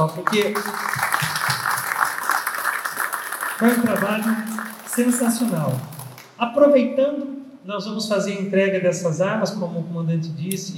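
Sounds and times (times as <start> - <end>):
speech: 0.0 - 1.0, 3.6 - 10.7
audience applause: 0.0 - 6.3.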